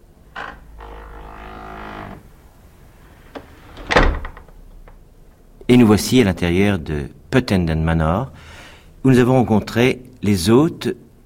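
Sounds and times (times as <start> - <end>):
old door of Puttenden Manor opening: 0.2 - 5.0
speech: 5.7 - 11.2.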